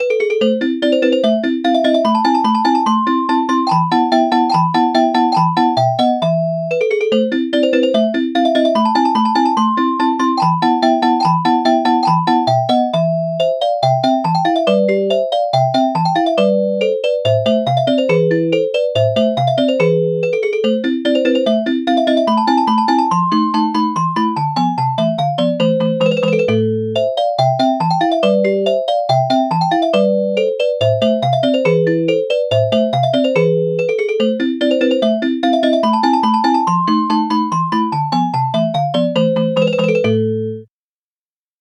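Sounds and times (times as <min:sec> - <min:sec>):
celesta: 0:00.0 - 0:40.7.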